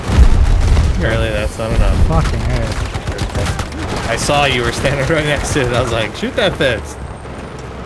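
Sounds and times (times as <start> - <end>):
two C4 charges detonating in a video game: 0.1 - 2.7
speech: 1.1 - 2.9, 4.1 - 7.0.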